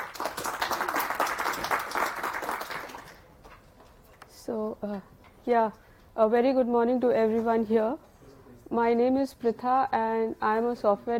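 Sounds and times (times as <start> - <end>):
audience applause welcoming a speaker at a software-defined storage developer session: 0.0 - 3.2
speech: 4.5 - 8.0, 8.7 - 11.1.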